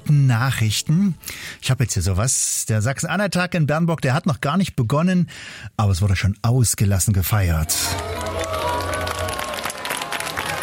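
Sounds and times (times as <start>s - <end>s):
speech: 0.1s - 8.8s
audience applauding: 7.7s - 10.6s.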